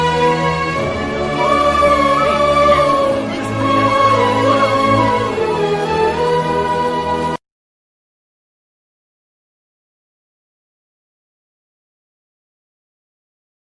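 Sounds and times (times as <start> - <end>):
sad background music: 0.0 - 7.4.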